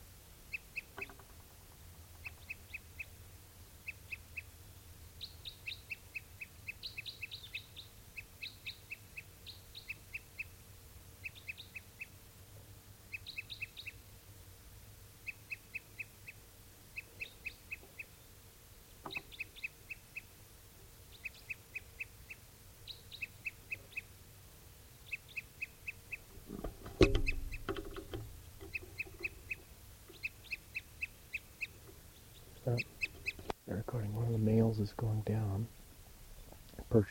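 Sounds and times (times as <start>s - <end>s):
bird singing: 0.0s - 3.2s, 3.8s - 4.5s, 5.1s - 10.6s, 11.2s - 12.2s, 13.1s - 14.2s, 15.2s - 18.4s, 19.0s - 20.4s, 21.0s - 24.1s, 24.9s - 35.7s
low hum: 0.0s - 37.1s
thump: 26.6s - 28.2s
speech: 33.7s - 35.8s, 36.9s - 37.1s.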